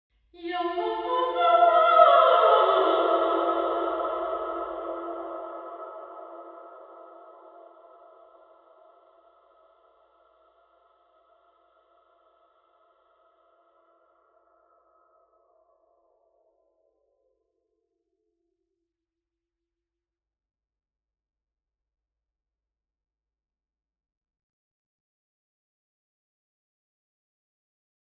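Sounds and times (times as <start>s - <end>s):
person singing in a warehouse: 0.4s - 7.4s.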